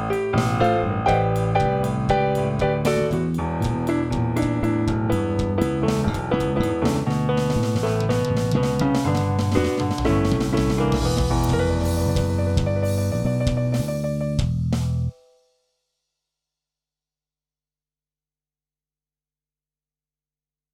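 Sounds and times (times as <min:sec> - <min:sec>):
blues music: 0:00.0 - 0:15.1.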